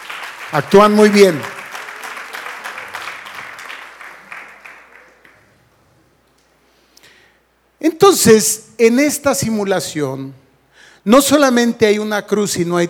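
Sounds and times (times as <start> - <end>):
audience applause: 0.0 - 5.5
speech: 0.5 - 1.5, 8.2 - 10.4, 11.0 - 12.8.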